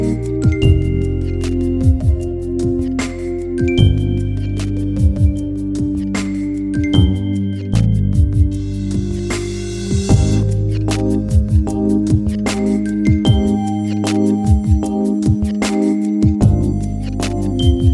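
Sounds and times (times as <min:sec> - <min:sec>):
instrumental music without main vocal: 0:00.0 - 0:17.9.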